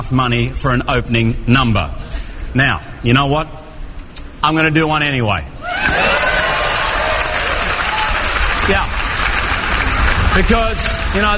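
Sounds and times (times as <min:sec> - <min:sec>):
speech: 0:00.0 - 0:03.6, 0:04.4 - 0:06.1, 0:08.7 - 0:08.9, 0:10.4 - 0:11.3
audience applause and cheering at the Oscars ceremony: 0:05.6 - 0:11.3.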